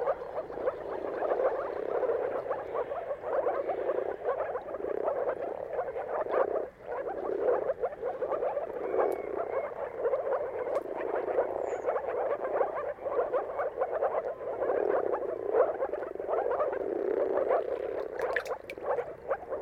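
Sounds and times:
moor frog mating chorus: 0:00.0 - 0:19.6.

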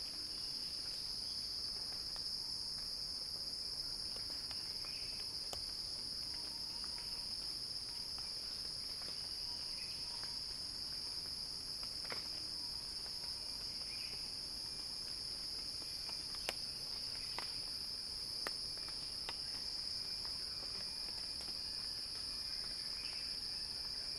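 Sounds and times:
cicada drone: 0:00.0 - 0:24.1.

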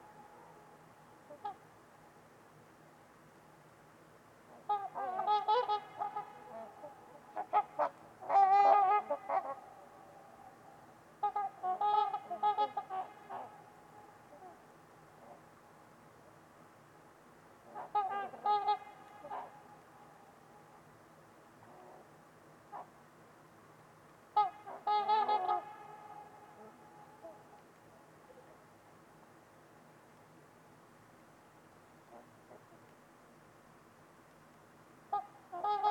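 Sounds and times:
trumpeter swans honking: 0:00.0 - 0:01.7, 0:04.5 - 0:15.5, 0:17.6 - 0:20.8, 0:24.3 - 0:27.6, 0:35.1 - 0:35.8
low background hiss: 0:00.0 - 0:35.8.

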